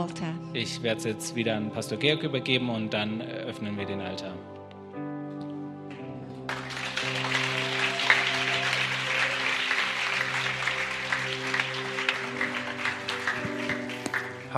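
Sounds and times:
speech: 0.0s - 4.6s
church congregation applauding a speaker: 6.5s - 14.5s.

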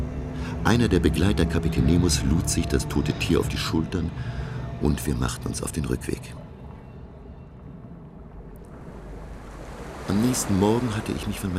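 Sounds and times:
speech: 0.6s - 6.4s, 10.1s - 11.5s
ocean waves: 8.6s - 11.5s.

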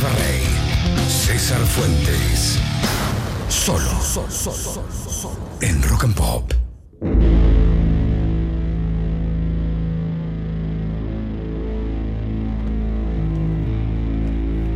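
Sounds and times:
drone doom music track: 0.0s - 5.6s, 6.7s - 14.7s
speech: 1.5s - 2.8s, 3.6s - 7.5s.

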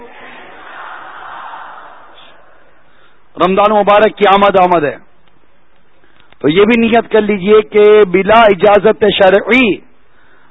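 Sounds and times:
crowd chanting a religious slogan at an Islamic religious gathering: 0.0s - 2.8s
speech: 3.4s - 5.1s, 6.4s - 9.8s.

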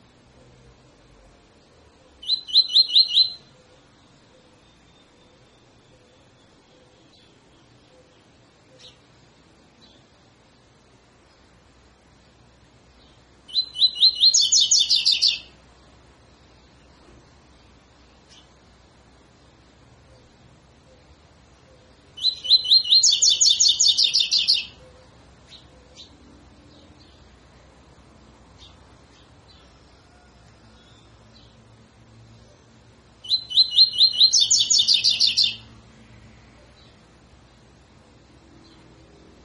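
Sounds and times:
double-collared seedeater singing whistles: 2.2s - 3.4s, 13.5s - 15.4s, 22.2s - 24.7s, 33.2s - 35.6s.

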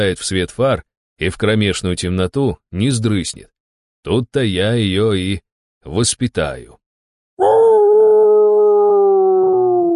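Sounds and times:
speech: 0.0s - 6.8s
werewolf howling: 7.4s - 9.9s.

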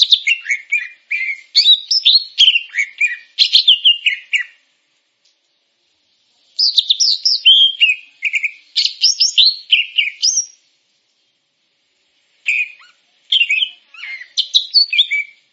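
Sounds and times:
Grey-cheeked bulbul in long varied song: 0.0s - 4.6s, 6.6s - 10.7s, 12.4s - 15.5s.

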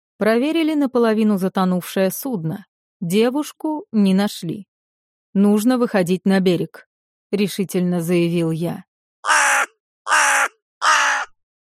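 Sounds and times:
speech: 0.2s - 4.7s, 5.3s - 9.4s
crow cawing: 9.2s - 11.4s.

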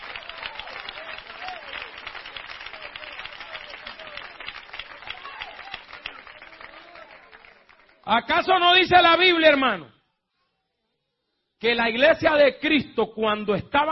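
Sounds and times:
church congregation applause during a sermon: 0.0s - 9.8s
speech: 8.1s - 10.0s, 11.6s - 13.9s.

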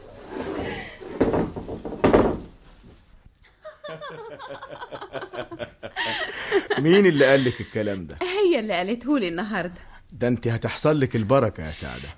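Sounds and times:
door being shut and locked from the outside: 1.2s - 2.6s
laughter: 3.5s - 8.2s
speech: 6.8s - 12.1s.

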